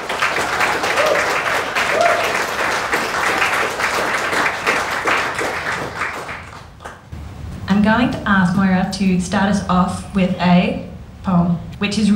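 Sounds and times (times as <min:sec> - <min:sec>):
audience applause: 0:00.0 - 0:07.1
speech: 0:07.8 - 0:12.1.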